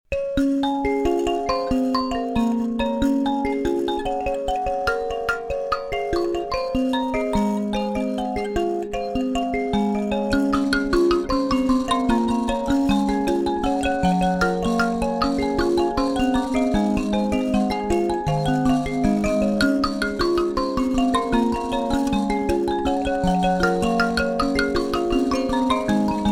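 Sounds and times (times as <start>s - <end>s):
mbira: 0.1s - 26.3s.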